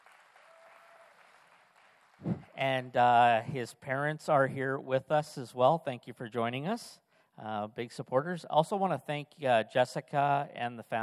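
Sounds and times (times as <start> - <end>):
audience applause welcoming a senior student: 0.0 - 2.6
speech: 2.6 - 11.0.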